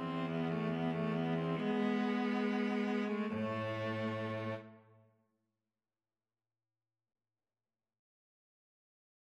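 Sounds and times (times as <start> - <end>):
viola and cello duet playing a gavotte: 0.0 - 4.8.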